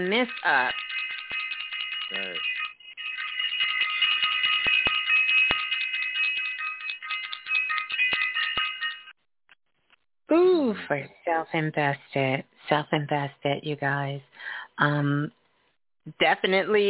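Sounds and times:
speech: 0.0s - 0.8s, 10.3s - 15.4s, 16.0s - 16.8s
bell sound effect ringing: 0.0s - 9.2s.

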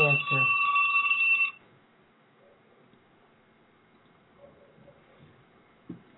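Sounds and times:
telephone ringing: 0.0s - 1.6s.

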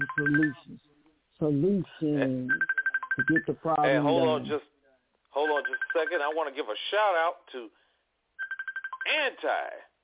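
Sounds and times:
personal phone line ringing during a live show: 0.0s - 0.7s, 2.5s - 4.3s, 5.4s - 6.5s, 8.4s - 9.2s
speech: 0.2s - 0.8s, 1.4s - 4.7s, 5.4s - 7.8s, 9.1s - 9.8s.

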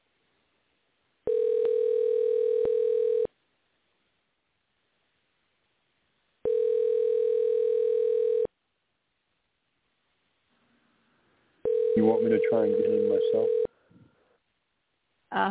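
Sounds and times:
ringback tone of an outgoing phone call: 1.3s - 3.3s, 6.4s - 8.5s, 11.6s - 13.7s
speech: 12.1s - 13.7s.

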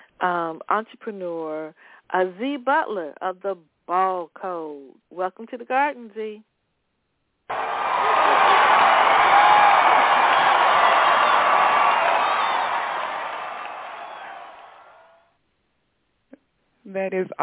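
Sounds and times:
speech: 0.2s - 6.5s, 16.9s - 17.4s
crowd cheering and applauding: 7.5s - 15.2s
whoops: 7.5s - 15.2s.

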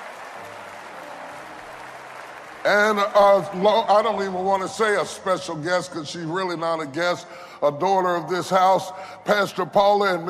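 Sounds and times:
church congregation clapping during a morning service: 0.0s - 5.4s
speech: 2.6s - 10.2s.

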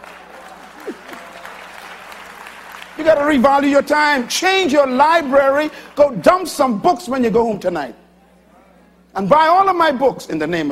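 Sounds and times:
crowd applauding: 0.0s - 6.4s
speech: 3.0s - 8.0s, 9.2s - 10.6s.

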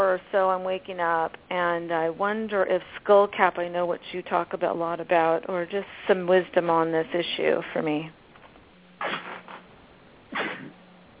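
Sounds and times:
speech: 0.1s - 8.2s
person sneezing: 9.0s - 9.7s, 10.3s - 10.8s.

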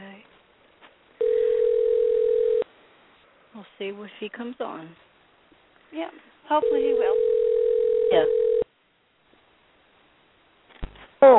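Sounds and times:
telephone dial tone while calling a guest in California: 1.2s - 2.6s, 6.6s - 8.7s
speech: 3.8s - 5.1s, 5.9s - 7.3s, 8.1s - 8.4s.

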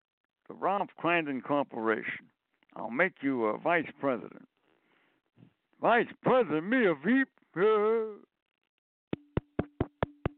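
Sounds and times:
speech: 0.5s - 4.5s, 5.8s - 8.3s
knocking on a door: 9.2s - 10.3s.

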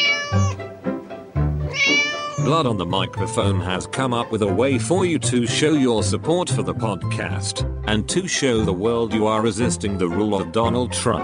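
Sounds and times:
cat meowing: 0.0s - 0.6s, 1.7s - 2.6s
speech: 2.5s - 11.2s.

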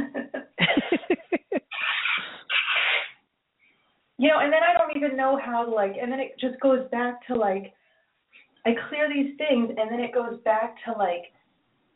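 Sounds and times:
laughter: 0.0s - 1.7s
nose blowing: 1.6s - 3.2s
speech: 4.2s - 7.8s, 8.6s - 11.4s.

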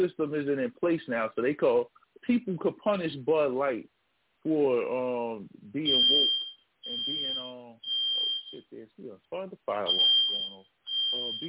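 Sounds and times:
speech: 0.0s - 7.9s, 8.5s - 11.4s
fire alarm beeping: 5.9s - 8.6s, 9.9s - 11.4s.

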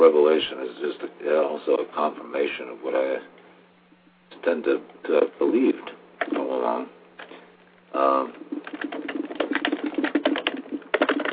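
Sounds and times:
speech: 0.0s - 3.4s, 4.3s - 7.3s, 7.9s - 9.2s
keyboard typing notes: 6.2s - 6.5s, 8.3s - 11.3s.

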